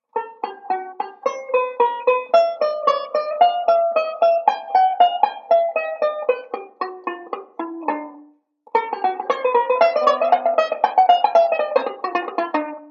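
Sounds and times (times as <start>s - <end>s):
banjo playing a ii V pattern: 0.0s - 12.8s.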